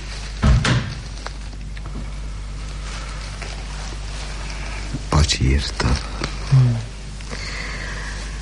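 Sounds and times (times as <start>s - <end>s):
room door being closed: 0.4s - 1.1s
speech: 5.3s - 7.5s.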